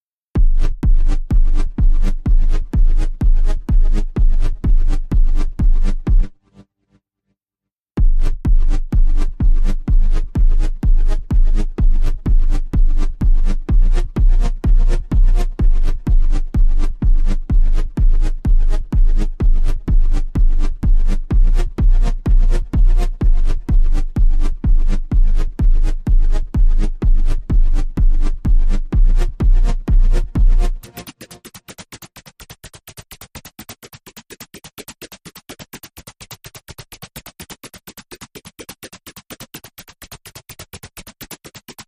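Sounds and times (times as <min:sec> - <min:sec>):
drum and bass music: 0:00.4 - 0:06.4, 0:08.0 - 0:31.7.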